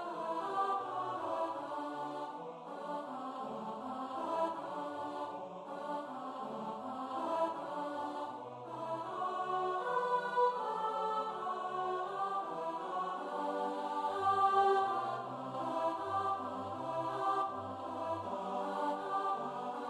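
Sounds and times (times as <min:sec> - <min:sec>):
choir singing a choral arrangement: 0:00.0 - 0:19.8.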